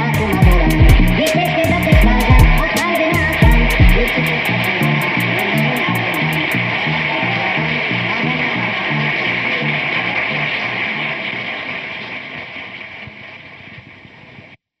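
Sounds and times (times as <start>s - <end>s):
crazy old electro music: 0.0s - 10.8s.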